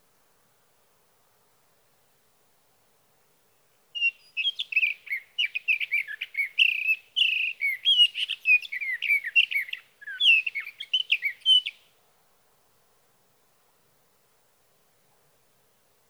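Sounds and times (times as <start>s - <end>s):
sage thrasher singing: 4.0s - 11.8s.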